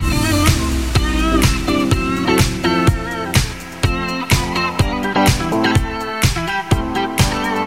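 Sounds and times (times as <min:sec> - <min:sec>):
guitar: 0:00.0 - 0:07.6.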